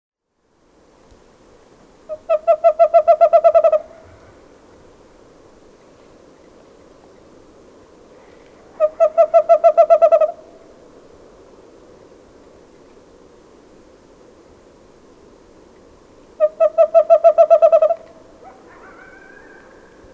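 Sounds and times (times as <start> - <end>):
bird hooting: 2.0 - 4.5, 8.6 - 10.9, 16.4 - 20.1.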